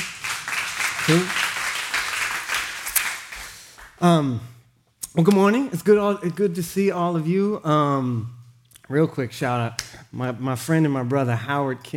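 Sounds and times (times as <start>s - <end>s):
audience applause: 0.0s - 3.7s
speech: 1.1s - 1.4s, 4.0s - 4.6s, 5.2s - 11.9s.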